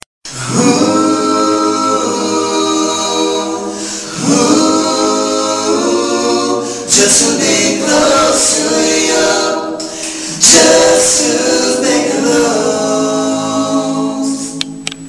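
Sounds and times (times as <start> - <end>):
a cappella singing: 0.3 - 15.0.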